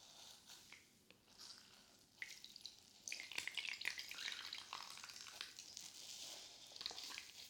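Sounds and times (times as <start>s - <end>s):
soapy sponge worked with water fizzing: 0.2s - 7.4s
wet squelches and clicks: 0.5s - 5.9s.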